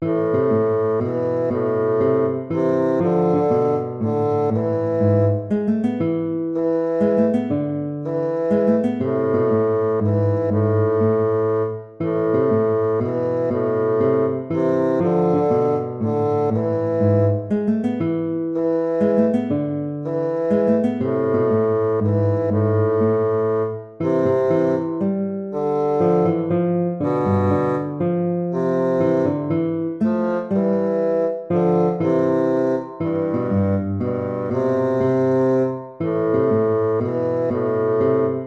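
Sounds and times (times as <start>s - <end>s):
baroque minuet in minor key: 0.0s - 38.4s.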